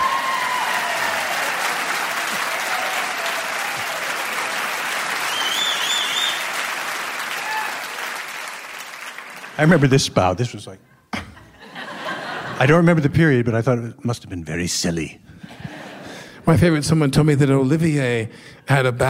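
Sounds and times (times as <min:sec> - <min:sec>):
audience applause: 0:00.0 - 0:10.0
speech: 0:09.6 - 0:11.0, 0:12.6 - 0:15.6, 0:16.5 - 0:19.0
laughter: 0:11.2 - 0:12.9, 0:15.4 - 0:16.4.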